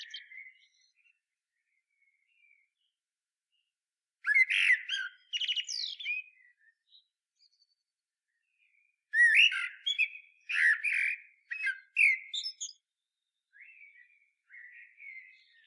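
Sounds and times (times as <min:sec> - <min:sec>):
common blackbird singing: 0:00.0 - 0:01.1, 0:04.2 - 0:07.8, 0:09.1 - 0:12.8, 0:13.5 - 0:15.6.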